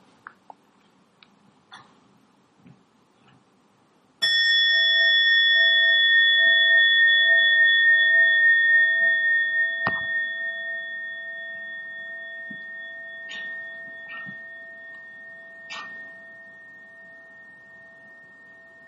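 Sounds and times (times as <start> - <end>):
soft taps and rustles: 2.6 - 3.5
mindfulness bell struck: 4.2 - 18.8.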